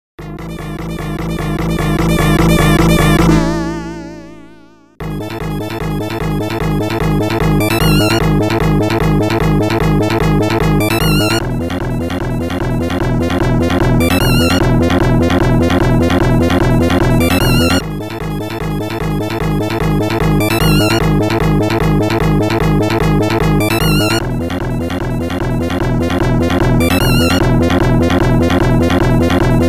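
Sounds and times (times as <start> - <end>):
boss battle background music: 0.2 - 3.8, 5.0 - 29.6.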